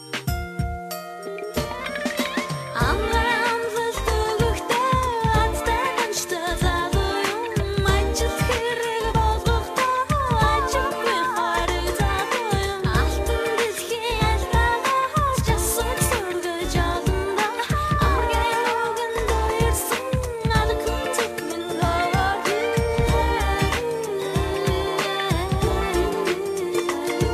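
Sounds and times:
love song: 0.9 - 27.3.

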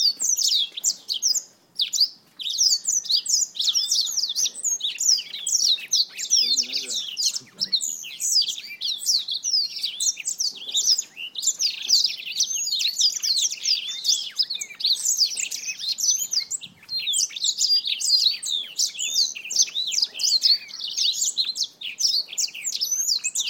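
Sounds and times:
black-throated finch calling: 0.0 - 23.4.

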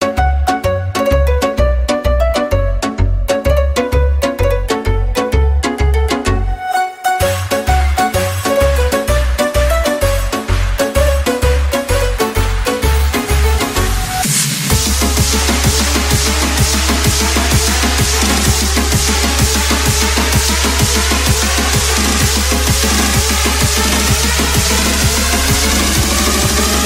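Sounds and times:
big room music: 0.0 - 26.8.

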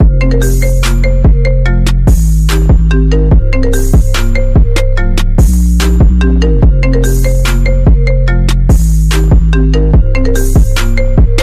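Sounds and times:
music beat: 0.0 - 11.4.

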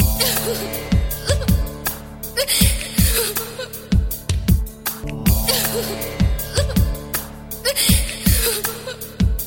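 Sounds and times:
girl crying: 0.2 - 1.8, 2.4 - 4.0, 5.5 - 7.0, 7.6 - 9.3.

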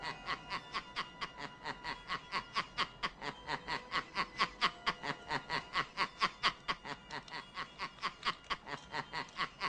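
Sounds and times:
toy laugh bag laughing: 0.0 - 9.6.

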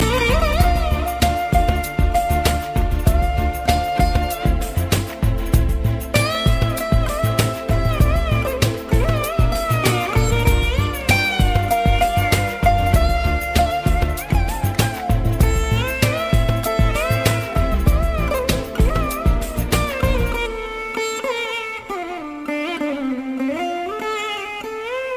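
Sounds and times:
Indian music: 0.0 - 25.1.

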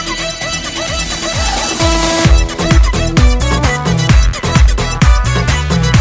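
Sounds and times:
melody: 1.0 - 5.9.

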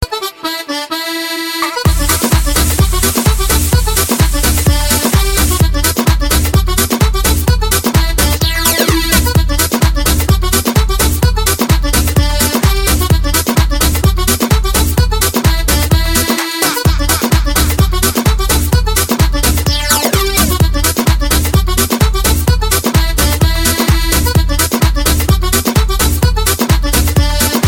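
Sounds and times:
club music: 0.0 - 27.6.

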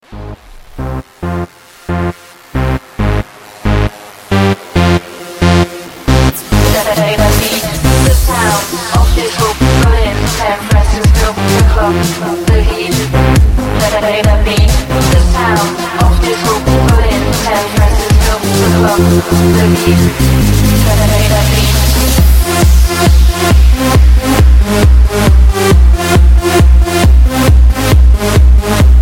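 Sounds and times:
disco music: 0.0 - 29.0.

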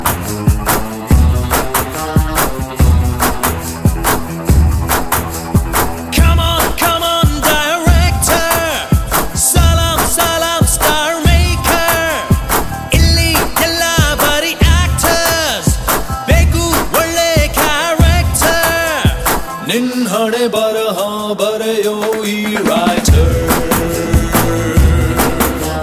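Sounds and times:
music: 0.0 - 25.8.

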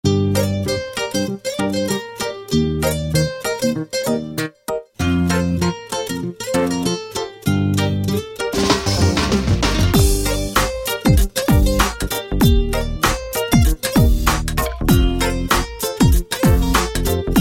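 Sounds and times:
cute music: 0.1 - 17.3.

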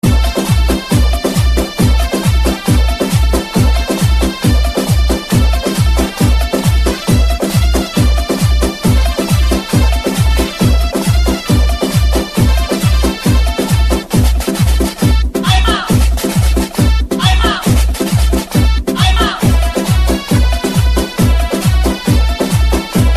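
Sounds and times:
bass: 0.0 - 23.1.

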